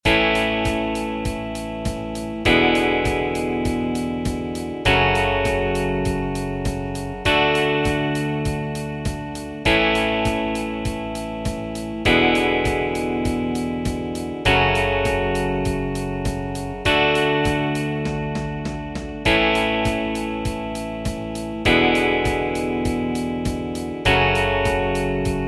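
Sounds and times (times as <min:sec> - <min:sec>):
country music: 0:00.0 - 0:25.4.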